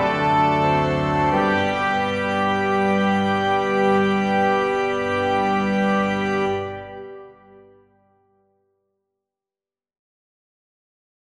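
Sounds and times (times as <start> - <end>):
organ playing a hymn: 0.0 - 8.0.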